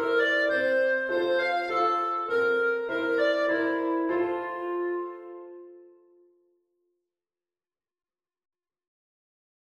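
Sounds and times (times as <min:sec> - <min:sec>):
German dance tune on clarinet: 0:00.0 - 0:06.1.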